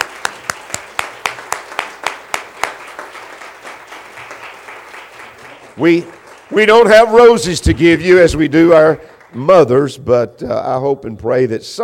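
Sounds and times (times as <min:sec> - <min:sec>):
audience applause: 0:00.0 - 0:09.9
speech: 0:05.8 - 0:11.8.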